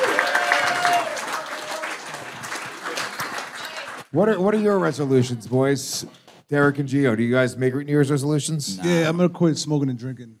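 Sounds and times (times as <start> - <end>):
audience applause: 0.0 - 4.1
speech: 4.1 - 10.3.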